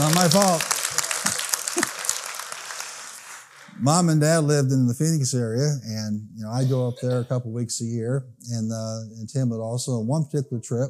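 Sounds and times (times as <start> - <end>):
speech: 0.0 - 0.7, 3.8 - 10.8
audience hand clapping: 0.0 - 3.6.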